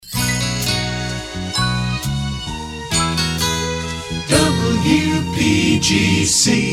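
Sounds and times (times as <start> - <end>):
slow Christmas kit jingle: 0.0 - 6.6.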